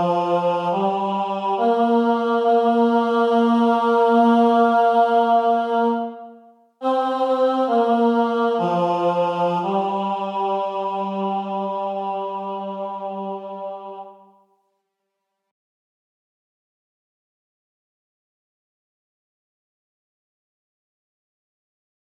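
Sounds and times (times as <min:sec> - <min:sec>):
tenor singing: 0:00.0 - 0:14.4.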